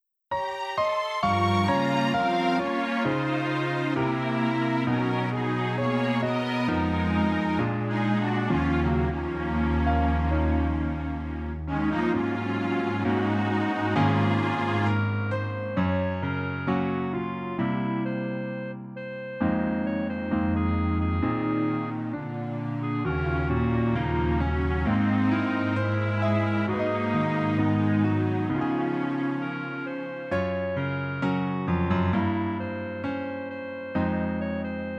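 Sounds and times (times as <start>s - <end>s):
piano melody backing track: 0.3s - 34.9s.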